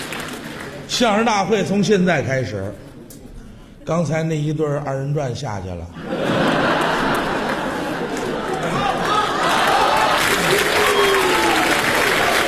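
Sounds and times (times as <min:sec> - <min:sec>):
audience applause: 0:00.0 - 0:00.9, 0:06.3 - 0:12.4
laughter: 0:00.0 - 0:01.3, 0:02.0 - 0:03.1, 0:04.7 - 0:06.6, 0:10.6 - 0:12.4
speech: 0:00.9 - 0:02.8, 0:03.9 - 0:06.4.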